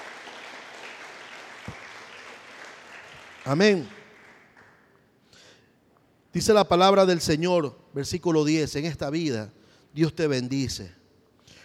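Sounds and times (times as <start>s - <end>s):
audience clapping: 0.0s - 5.0s
speech: 3.4s - 4.0s, 6.3s - 11.0s.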